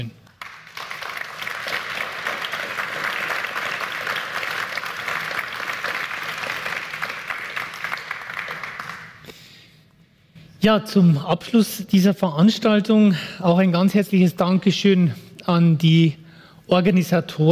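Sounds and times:
speech: 0:00.0 - 0:00.2, 0:10.6 - 0:17.4
audience applause: 0:00.3 - 0:09.3.

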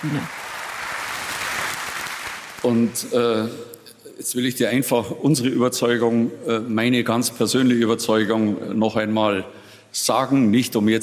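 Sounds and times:
speech: 0:00.0 - 0:00.4, 0:02.6 - 0:11.0
sparse applause from party convention audience: 0:00.0 - 0:03.2.

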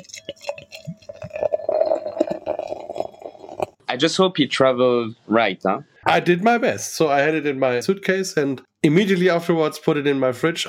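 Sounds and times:
beer pouring into a glass: 0:00.0 - 0:03.8
speech: 0:04.0 - 0:10.6.

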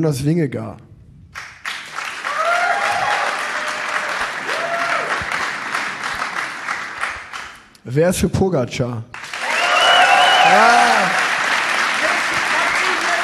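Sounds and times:
speech: 0:00.0 - 0:00.9, 0:07.9 - 0:09.1, 0:10.5 - 0:11.2
audience cheering: 0:02.1 - 0:07.0, 0:09.3 - 0:13.2.

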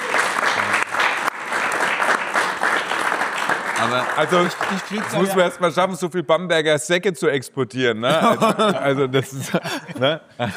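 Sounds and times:
audience applause: 0:00.0 - 0:05.8
speech: 0:03.8 - 0:10.5
laughter: 0:08.0 - 0:10.5.

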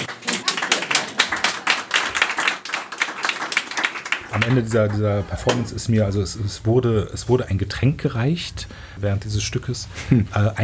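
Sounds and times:
audience clapping: 0:00.0 - 0:05.7
speech: 0:04.4 - 0:10.6.

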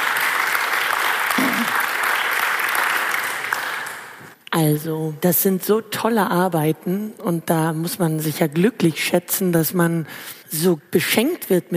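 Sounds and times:
theatre audience applause: 0:00.0 - 0:04.2
speech: 0:04.6 - 0:11.7.

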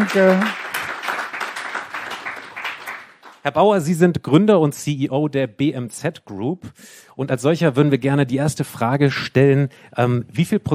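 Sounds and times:
speech: 0:00.0 - 0:00.6, 0:03.4 - 0:10.7
audience applause welcoming a podcast guest: 0:00.0 - 0:03.4.

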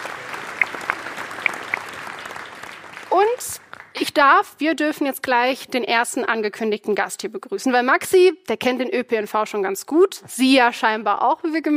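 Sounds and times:
audience applause: 0:00.0 - 0:04.1
speech: 0:04.2 - 0:11.7.

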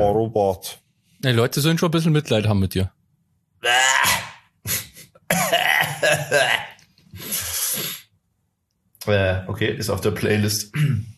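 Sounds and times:
speech: 0:00.0 - 0:03.0, 0:03.6 - 0:04.8, 0:09.0 - 0:11.1
man clearing throat: 0:04.7 - 0:06.8, 0:10.7 - 0:11.1
man coughing harshly: 0:04.7 - 0:06.8, 0:10.7 - 0:11.1.

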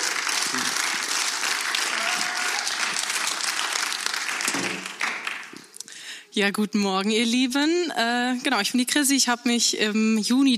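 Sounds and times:
audience clapping: 0:00.0 - 0:05.8
speech: 0:06.4 - 0:10.5.

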